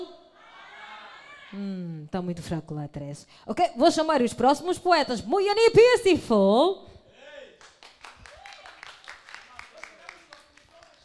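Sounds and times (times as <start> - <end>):
speech: 1.5 - 6.9
audience clapping: 7.6 - 11.0.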